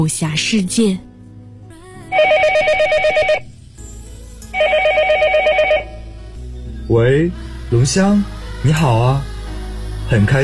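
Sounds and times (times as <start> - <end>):
speech: 0.0 - 1.1, 6.9 - 9.3, 10.1 - 10.4
telephone ringing for incoming call: 2.1 - 3.5, 4.6 - 6.0.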